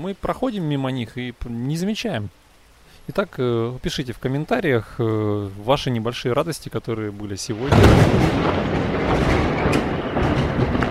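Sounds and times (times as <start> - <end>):
speech: 0.0 - 2.4, 3.1 - 9.3
thunder: 7.6 - 10.9.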